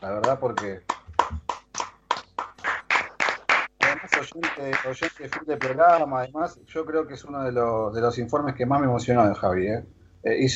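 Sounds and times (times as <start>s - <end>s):
speech: 0.0s - 1.0s, 4.3s - 10.5s
applause: 0.6s - 6.2s.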